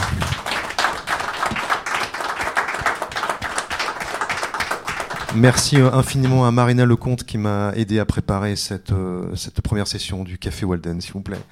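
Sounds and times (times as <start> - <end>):
audience applause: 0.0 - 6.4
speech: 5.3 - 11.5.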